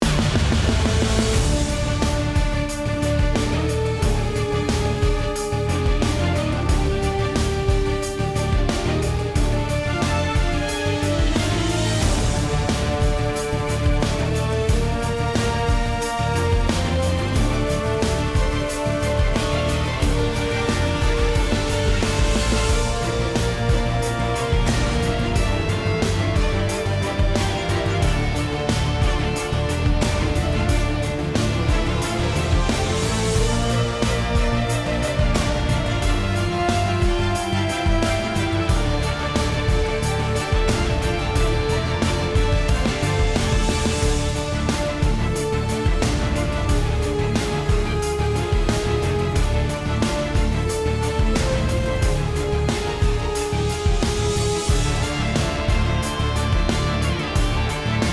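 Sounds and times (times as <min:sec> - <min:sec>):
battle arena background music: 0:00.0 - 0:58.1.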